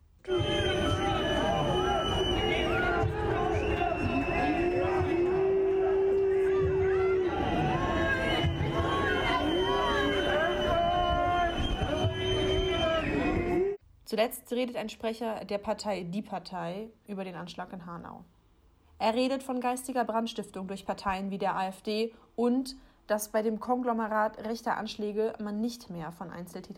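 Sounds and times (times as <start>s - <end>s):
large angry protesting crowd shouting: 0.3s - 13.8s
speech: 14.2s - 18.4s, 19.0s - 26.7s.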